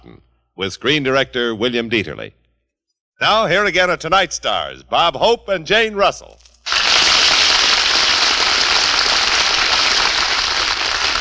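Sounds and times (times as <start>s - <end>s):
speech: 0.6s - 2.4s, 3.2s - 6.4s
studio audience applause: 6.7s - 11.1s.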